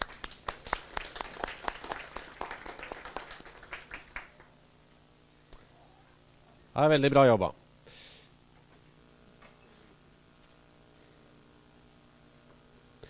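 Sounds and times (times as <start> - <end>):
small group applauding: 0.0 - 4.6
speech: 6.8 - 7.6.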